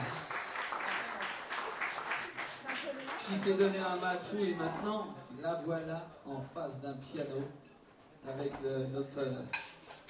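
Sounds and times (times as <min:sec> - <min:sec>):
audience applauding performers at a live music show: 0:00.0 - 0:03.8
speech: 0:03.3 - 0:09.6.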